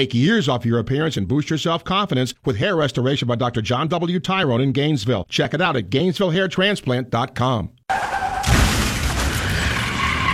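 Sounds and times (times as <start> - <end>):
speech: 0.0 - 8.2
car crash: 7.9 - 10.3
car tire squeal: 7.9 - 10.3
rumble and rattle of debris: 8.3 - 10.3.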